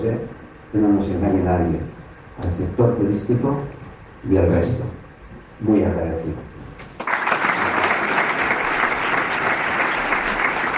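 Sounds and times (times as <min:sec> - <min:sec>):
speech: 0:00.0 - 0:05.0, 0:05.6 - 0:06.5
crowd applauding after speech: 0:07.0 - 0:10.7.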